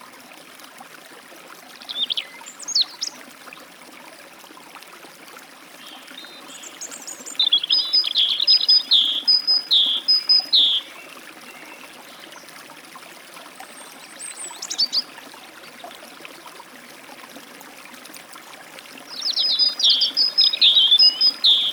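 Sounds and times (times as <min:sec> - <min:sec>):
forest stream flowing: 0:00.0 - 0:21.7
European robin at a forest stream: 0:01.9 - 0:03.2, 0:06.3 - 0:11.9, 0:14.2 - 0:15.2, 0:19.1 - 0:21.7
great tit at a forest stream: 0:06.6 - 0:11.0, 0:19.1 - 0:21.7.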